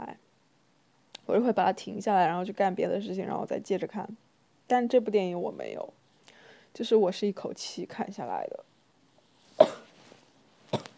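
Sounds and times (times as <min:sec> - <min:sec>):
speech: 0:01.3 - 0:06.0, 0:06.8 - 0:08.7
person coughing from a persistent unexplained cough: 0:09.6 - 0:10.0, 0:10.7 - 0:10.9.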